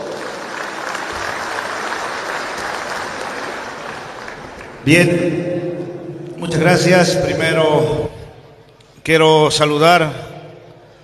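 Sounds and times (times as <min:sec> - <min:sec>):
audience applause: 0:00.0 - 0:04.9
speech: 0:04.8 - 0:05.6, 0:06.4 - 0:08.2, 0:09.0 - 0:10.3.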